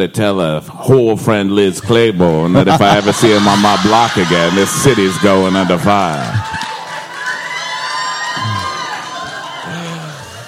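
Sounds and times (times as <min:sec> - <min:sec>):
speech: 0:00.0 - 0:06.6
laughter: 0:01.9 - 0:07.0
crowd cheering loudly with whoops and shouts: 0:01.9 - 0:10.4
dense applause: 0:03.7 - 0:10.4.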